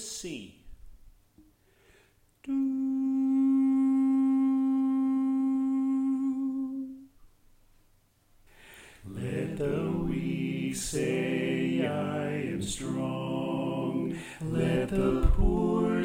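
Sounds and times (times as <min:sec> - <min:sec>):
soprano singing: 0:02.5 - 0:07.1, 0:09.1 - 0:16.0.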